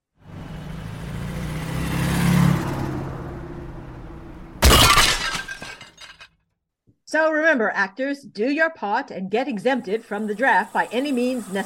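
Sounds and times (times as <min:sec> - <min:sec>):
car driving off, comedy sound effect: 0:00.1 - 0:04.6
crash of shattering glass: 0:04.6 - 0:06.3
speech: 0:07.1 - 0:11.6.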